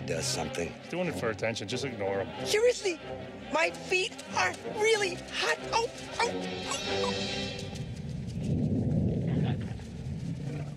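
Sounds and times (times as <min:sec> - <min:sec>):
speech: 0:00.1 - 0:07.6
stomach rumbling: 0:07.8 - 0:10.7.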